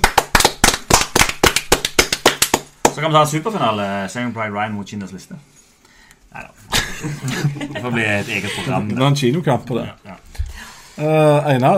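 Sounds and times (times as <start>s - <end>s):
applause: 0.0s - 3.0s
speech: 3.0s - 5.6s, 6.3s - 10.2s, 11.0s - 11.7s
laughter: 6.7s - 8.9s.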